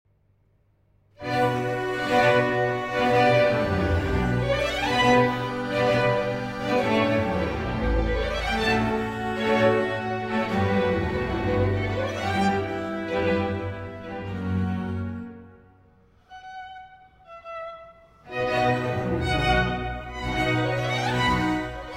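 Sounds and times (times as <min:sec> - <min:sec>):
violin concerto music: 0:01.2 - 0:21.9.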